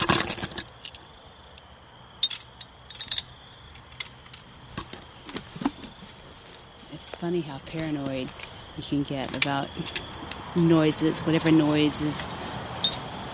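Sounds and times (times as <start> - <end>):
bike lock chain jangling while being fastened: 0.0 - 1.0, 2.2 - 6.0, 7.8 - 10.4, 12.8 - 13.1
speech: 7.2 - 12.6.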